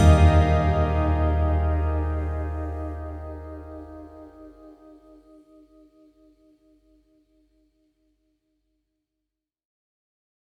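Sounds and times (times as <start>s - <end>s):
Marathi aarti devotional song: 0.0s - 4.7s.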